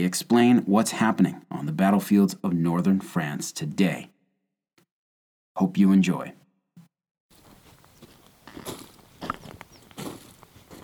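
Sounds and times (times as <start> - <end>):
speech: 0.0 - 4.1, 5.6 - 6.4
footsteps trudging uphill over rough ground on a battlefield crater: 7.3 - 10.8.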